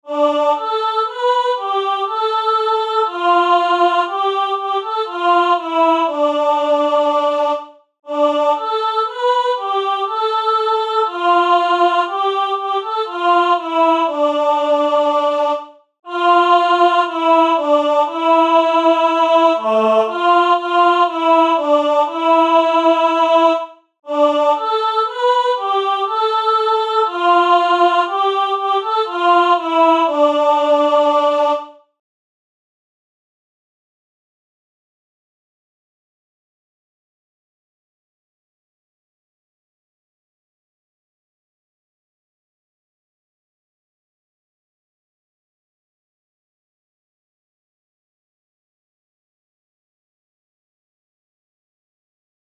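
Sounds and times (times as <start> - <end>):
MIDI soprano part of a carol: 0.1 - 31.7.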